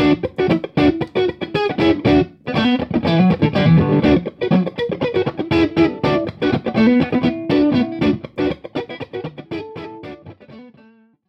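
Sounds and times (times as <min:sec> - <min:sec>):
vintage funk guitar: 0:00.0 - 0:10.9.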